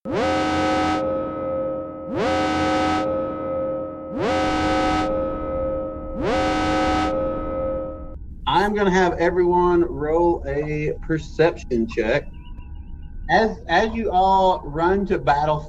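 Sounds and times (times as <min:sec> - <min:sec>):
spaceship alarms going off: 0:00.1 - 0:15.6
speech: 0:08.7 - 0:12.4, 0:13.3 - 0:15.6.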